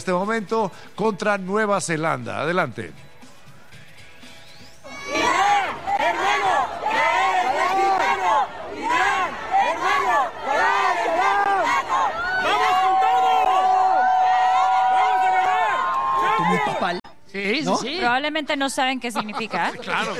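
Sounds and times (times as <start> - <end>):
speech: 0.0 - 3.1, 16.9 - 20.1
large crowd chanting and cheering farewell: 4.8 - 16.8
laughter: 16.2 - 17.0, 19.0 - 20.1.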